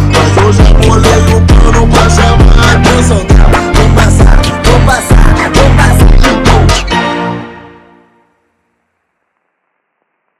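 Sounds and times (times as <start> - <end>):
slowed funk music: 0.0 - 7.9.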